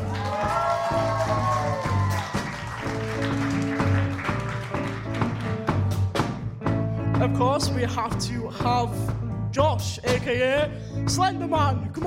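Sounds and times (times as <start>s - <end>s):
audience applause: 0.0s - 6.0s
speech: 7.3s - 12.0s.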